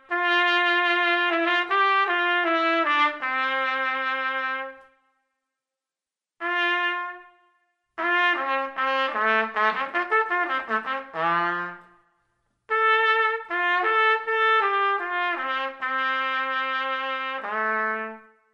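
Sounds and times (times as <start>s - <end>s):
trumpet playing a larghetto: 0.0s - 5.0s, 6.4s - 12.1s, 12.7s - 18.5s.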